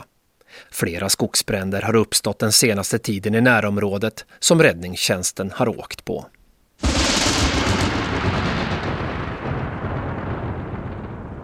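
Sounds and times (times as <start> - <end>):
speech: 0.6 - 6.4
thunder from a violent thunderstorm: 6.8 - 11.4.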